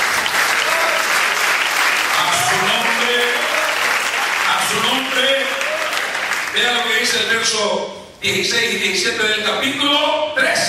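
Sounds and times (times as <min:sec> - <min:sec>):
audience applause: 0:00.0 - 0:06.6
speech: 0:06.6 - 0:10.6.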